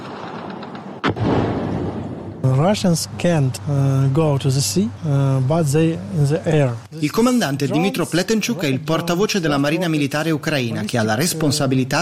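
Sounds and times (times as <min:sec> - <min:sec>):
anti-aircraft fire: 0:00.0 - 0:02.9
speech: 0:02.5 - 0:12.0.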